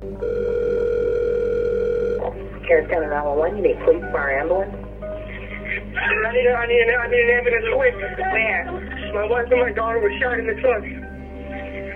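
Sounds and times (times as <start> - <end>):
telephone ringing tone on a 911 call: 0.0 - 2.4
phone line click: 0.2 - 2.4
speech: 2.7 - 4.8, 6.0 - 11.1
laughter: 5.1 - 10.6, 11.4 - 11.9.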